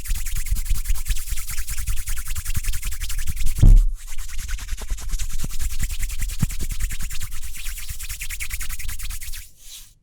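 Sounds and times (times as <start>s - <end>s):
hands rubbing and scratching together: 1.0s - 9.9s
heavy thump: 3.6s - 4.0s.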